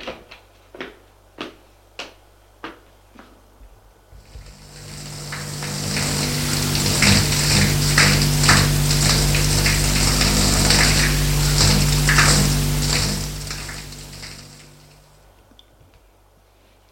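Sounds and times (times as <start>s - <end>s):
running shower water: 4.2s - 15.1s.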